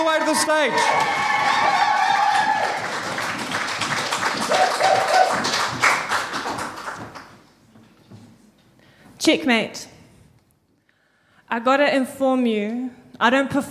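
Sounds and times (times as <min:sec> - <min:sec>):
audience clapping: 0:00.0 - 0:07.7
speech: 0:00.2 - 0:01.9, 0:09.2 - 0:09.9, 0:11.5 - 0:13.6
whoops and cheers: 0:00.2 - 0:03.1, 0:04.5 - 0:05.5.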